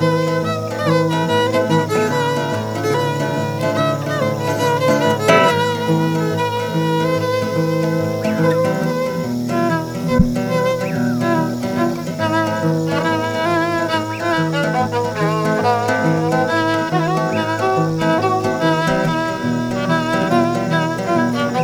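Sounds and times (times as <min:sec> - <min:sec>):
guitar: 0:00.0 - 0:21.6
violin: 0:00.0 - 0:21.6.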